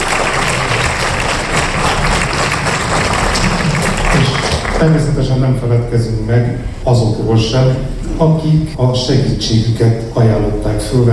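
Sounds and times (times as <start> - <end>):
audience applause: 0.0 - 5.0
speech: 4.8 - 11.1.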